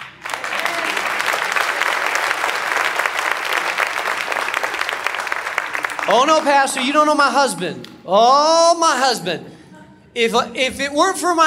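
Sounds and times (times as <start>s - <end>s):
audience clapping: 0.0s - 8.0s
speech: 6.1s - 9.5s, 10.2s - 11.4s.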